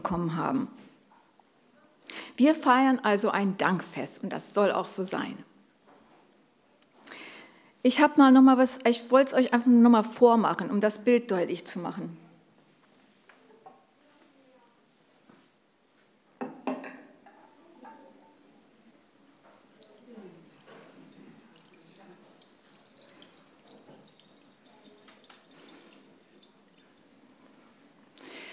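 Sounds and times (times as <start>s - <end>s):
speech: 0.0s - 0.9s, 2.1s - 5.5s, 7.8s - 12.2s
liquid poured into a vessel until it overflows: 19.4s - 27.8s.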